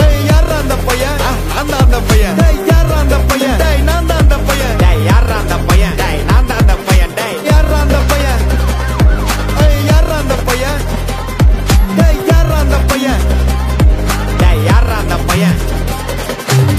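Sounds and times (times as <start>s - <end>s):
ringtone: 0.2s - 16.7s.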